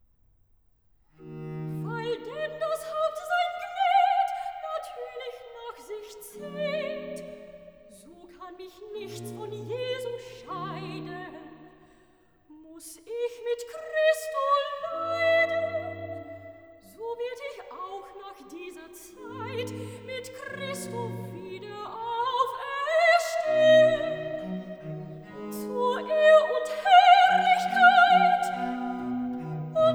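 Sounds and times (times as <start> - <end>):
soprano singing a cantata recitative: 1.5 - 29.9.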